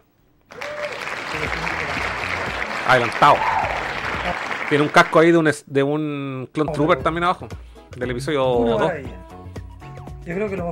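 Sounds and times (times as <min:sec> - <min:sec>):
audience applause: 0:00.5 - 0:05.4
speech: 0:01.4 - 0:01.8, 0:02.9 - 0:03.6, 0:04.3 - 0:09.3, 0:10.3 - 0:10.7.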